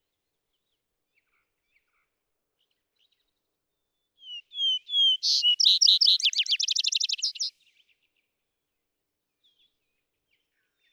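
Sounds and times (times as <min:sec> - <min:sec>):
vesper sparrow singing: 0:04.2 - 0:07.5.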